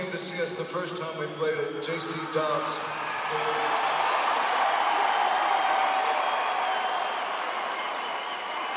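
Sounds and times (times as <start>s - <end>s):
speech: 0.1s - 4.0s
large concert crowd applauding and cheering: 2.9s - 8.7s.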